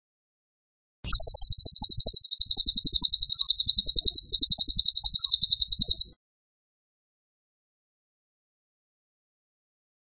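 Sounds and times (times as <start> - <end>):
Tembakan bird chirping trill: 1.1 - 6.2.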